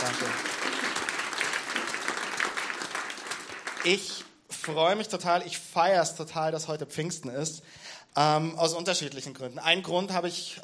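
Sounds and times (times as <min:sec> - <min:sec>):
audience applause: 0:00.0 - 0:04.3
speech: 0:03.8 - 0:10.6.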